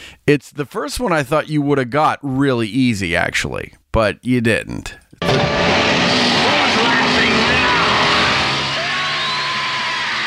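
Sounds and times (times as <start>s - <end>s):
speech: 0.3s - 5.8s
chainsaw running: 5.2s - 10.2s.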